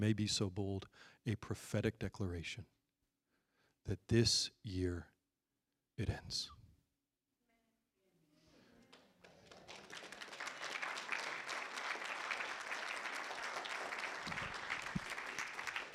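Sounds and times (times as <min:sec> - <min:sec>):
speech: 0:00.0 - 0:02.7, 0:03.8 - 0:05.1, 0:06.0 - 0:06.6
audience clapping: 0:08.9 - 0:15.9.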